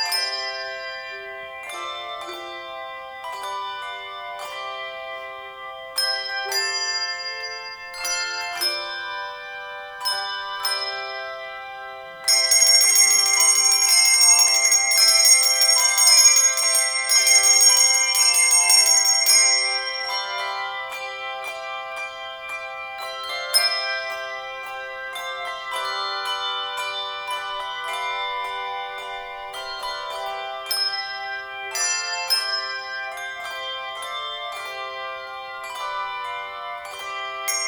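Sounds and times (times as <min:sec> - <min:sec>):
handbells playing a carol: 0:00.0 - 0:37.6.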